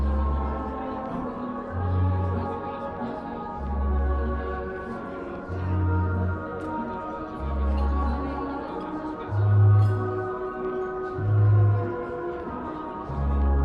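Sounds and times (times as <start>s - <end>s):
faint talking murmur in a coffee shop: 0.0s - 13.6s
oldies music in a coffee shop: 0.0s - 13.6s.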